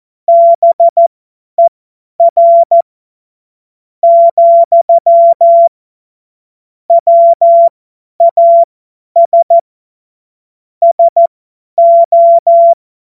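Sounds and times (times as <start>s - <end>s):
CW Morse code beeps: 0.3s - 1.0s, 1.6s - 2.8s, 4.0s - 5.7s, 6.9s - 9.6s, 10.8s - 12.8s.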